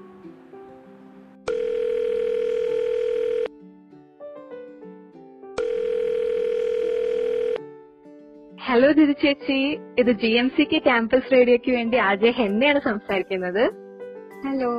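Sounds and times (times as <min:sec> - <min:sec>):
telephone ringing tone while calling: 0:01.5 - 0:03.5, 0:05.6 - 0:07.6
speech: 0:08.7 - 0:13.8, 0:14.4 - 0:14.7.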